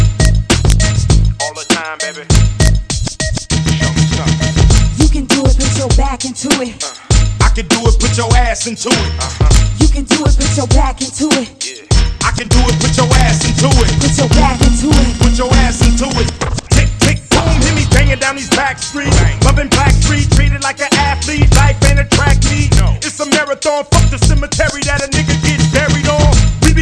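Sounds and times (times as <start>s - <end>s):
hip hop music: 0.0s - 26.8s.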